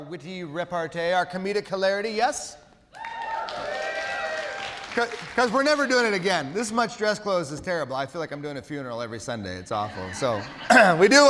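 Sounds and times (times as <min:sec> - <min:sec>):
speech: 0:00.1 - 0:03.6, 0:05.0 - 0:11.2
audience applause: 0:03.0 - 0:06.5.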